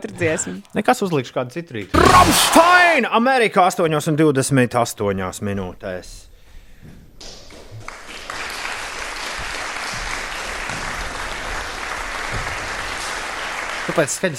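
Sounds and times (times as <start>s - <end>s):
speech: 0.2s - 7.3s, 13.9s - 14.3s
recorded applause: 7.5s - 14.3s.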